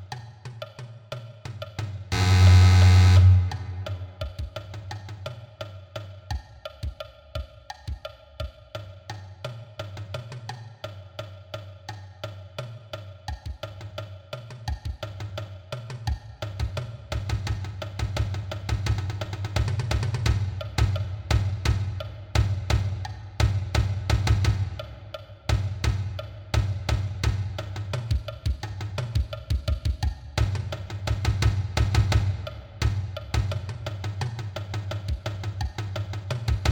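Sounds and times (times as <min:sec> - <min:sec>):
marching bass drum: 0:01.8 - 0:05.0, 0:16.6 - 0:36.7.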